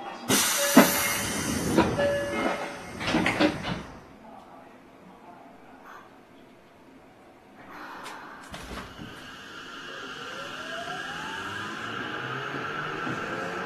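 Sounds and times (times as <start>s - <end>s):
Mitsubishi VVVF inverter whine: 0.3s - 4.2s, 8.5s - 13.6s.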